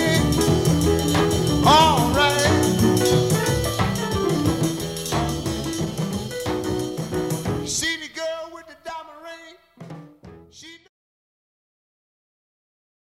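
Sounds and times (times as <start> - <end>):
Wurlitzer electric piano: 0.0 - 7.8.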